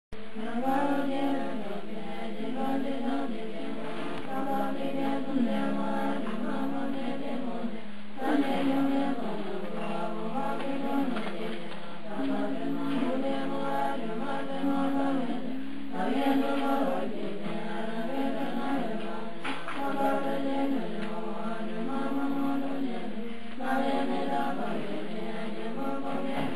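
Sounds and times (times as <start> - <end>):
Sakya nuns chanting: 0.2 - 26.5.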